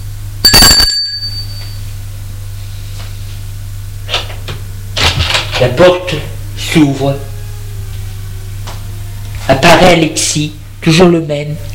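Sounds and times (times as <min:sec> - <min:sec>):
steady low hum: 0:00.0 - 0:11.7
doorbell ringing: 0:00.5 - 0:01.8
speech: 0:05.6 - 0:07.3, 0:09.5 - 0:11.7.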